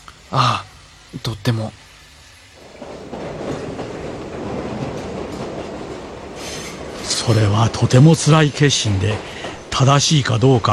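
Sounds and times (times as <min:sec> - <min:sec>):
speech: 0:00.3 - 0:01.8, 0:07.2 - 0:10.7
moving train wheels clickety-clack: 0:02.6 - 0:10.7.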